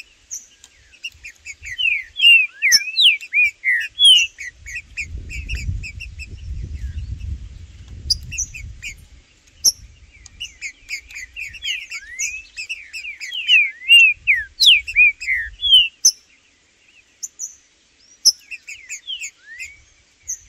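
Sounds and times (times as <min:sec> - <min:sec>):
green-winged saltator whistling: 0:01.5 - 0:06.0, 0:10.4 - 0:16.2, 0:18.2 - 0:20.4
low rumbling noise: 0:04.5 - 0:11.6.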